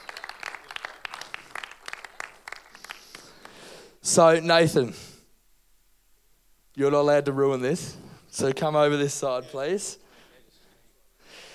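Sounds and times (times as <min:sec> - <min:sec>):
audience applause: 0:00.0 - 0:03.7
speech: 0:04.1 - 0:05.0, 0:06.8 - 0:10.0.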